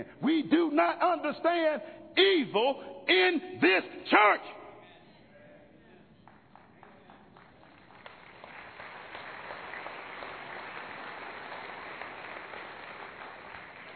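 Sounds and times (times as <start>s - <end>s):
speech: 0.0s - 4.6s
audience giving polite applause: 6.2s - 13.9s.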